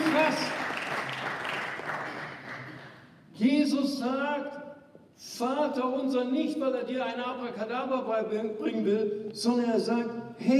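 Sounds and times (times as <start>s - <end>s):
congregation applause at a livestreamed church service: 0.0s - 3.1s
speech: 3.4s - 4.6s, 5.2s - 10.5s.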